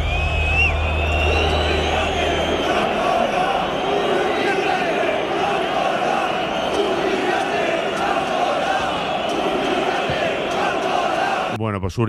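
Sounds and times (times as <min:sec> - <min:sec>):
low hum: 0:00.0 - 0:03.8
large crowd of football fans shouting in stadium: 0:00.0 - 0:11.6
speech: 0:11.9 - 0:12.0.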